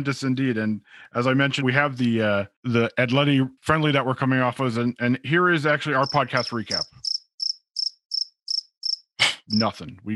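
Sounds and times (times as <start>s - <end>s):
speech: 0.0s - 7.1s, 9.5s - 10.1s
cricket chirping sound effect: 6.0s - 9.7s.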